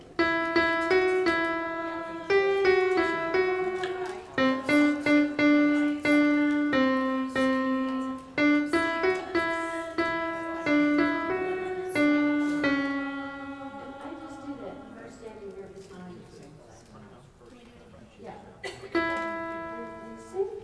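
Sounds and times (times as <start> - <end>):
alto singing refrain: 0.2 - 15.6.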